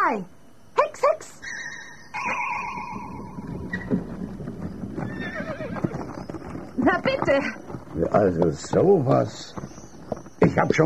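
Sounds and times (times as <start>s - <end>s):
speech: 0.1s - 0.4s, 7.3s - 9.6s, 10.6s - 10.8s
horse hitched to a junk wagon neighing: 1.5s - 6.4s
hoofbeats of horses hitched to a junk wagon: 2.2s - 10.8s.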